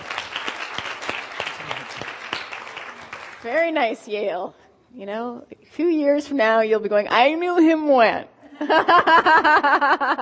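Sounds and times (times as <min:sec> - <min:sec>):
applause: 0:00.0 - 0:03.6
speech: 0:03.4 - 0:10.2
laughter: 0:08.6 - 0:10.2.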